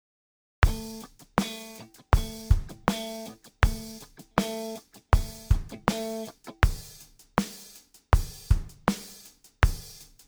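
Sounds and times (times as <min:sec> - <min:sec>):
groove music: 0:00.6 - 0:09.8.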